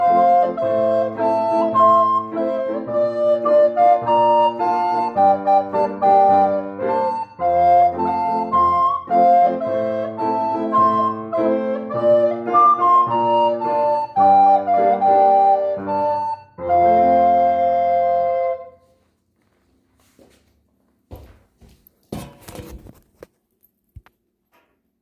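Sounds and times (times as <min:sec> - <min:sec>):
recorder playing: 0:00.0 - 0:18.9.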